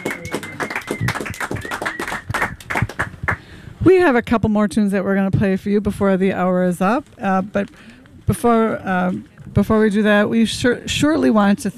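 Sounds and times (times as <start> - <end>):
faint whistle-like tone: 0.0 - 2.3
audience applause: 0.0 - 3.4
speech: 3.8 - 11.7.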